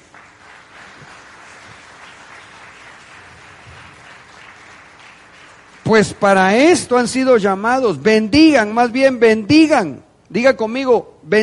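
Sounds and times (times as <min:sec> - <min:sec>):
audience applause: 0:00.0 - 0:06.2
speech: 0:05.9 - 0:11.4.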